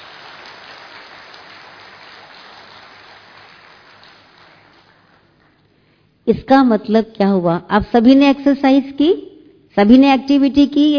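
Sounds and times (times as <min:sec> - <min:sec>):
audience applause: 0:00.0 - 0:05.7
speech: 0:06.3 - 0:10.9.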